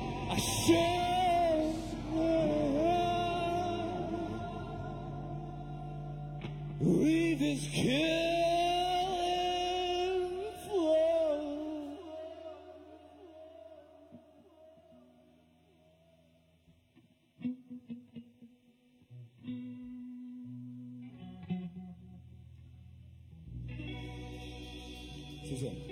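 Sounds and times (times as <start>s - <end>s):
live music with heavy reverb: 0.0s - 13.1s, 23.8s - 25.9s
speech: 0.3s - 1.1s, 7.5s - 8.2s.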